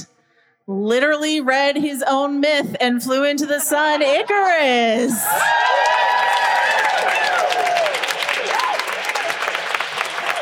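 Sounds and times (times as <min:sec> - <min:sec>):
speech: 0:00.7 - 0:06.3
live audience cheering and applauding: 0:05.0 - 0:10.4.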